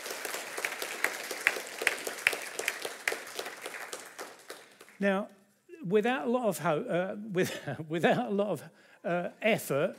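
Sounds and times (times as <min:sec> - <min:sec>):
audience applause: 0:00.0 - 0:05.0
speech: 0:05.0 - 0:09.9.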